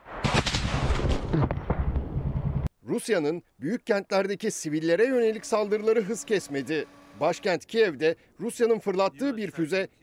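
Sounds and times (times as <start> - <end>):
gunfire in a forest firefight: 0.0 - 2.7
speech: 1.4 - 1.6, 2.9 - 10.0.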